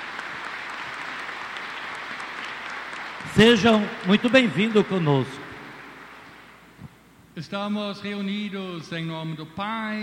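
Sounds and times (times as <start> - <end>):
crowd applause: 0.0 - 6.6
speech: 3.3 - 5.4, 7.4 - 10.0.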